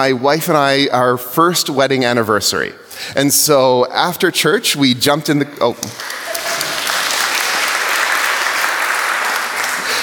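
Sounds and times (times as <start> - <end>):
speech: 0.0 - 6.2
crowd applause: 5.9 - 10.0.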